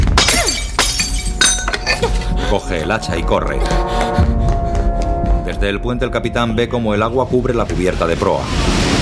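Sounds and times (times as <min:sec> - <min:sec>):
glass case smashed with metal hose nozzle: 0:00.1 - 0:02.1
speech: 0:02.0 - 0:04.4, 0:05.5 - 0:08.8.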